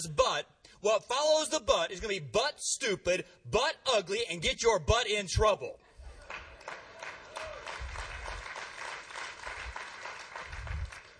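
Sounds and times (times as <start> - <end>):
speech: 0.0 - 5.8
reluctant applause from audience: 6.2 - 11.1.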